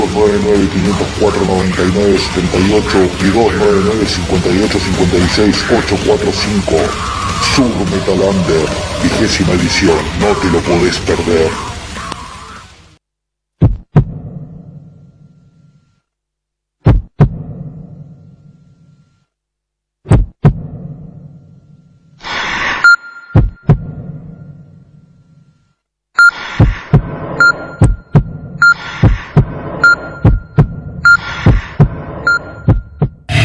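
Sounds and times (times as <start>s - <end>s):
speech: 0.1s - 11.7s
heartbeat sound effect with deep booming double thumps: 13.6s - 14.5s, 16.8s - 18.0s, 20.0s - 20.9s, 23.3s - 24.3s, 26.5s - 33.3s.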